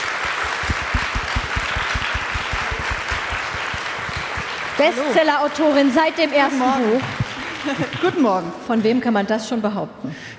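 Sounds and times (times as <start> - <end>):
audience applause: 0.0 - 8.2
speech: 4.8 - 10.3.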